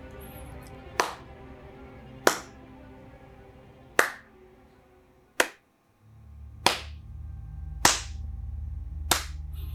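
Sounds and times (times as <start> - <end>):
low steady hum: 0.0 - 9.7
hand claps moving around a house: 1.0 - 1.3, 2.2 - 2.6, 4.0 - 4.3, 5.4 - 5.6, 6.6 - 7.0, 7.8 - 8.2, 9.1 - 9.4.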